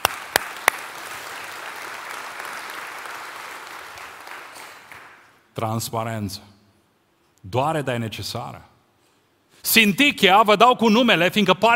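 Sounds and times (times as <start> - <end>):
audience applause: 0.0 - 5.3
speech: 5.6 - 6.6, 7.4 - 8.7, 9.6 - 11.7.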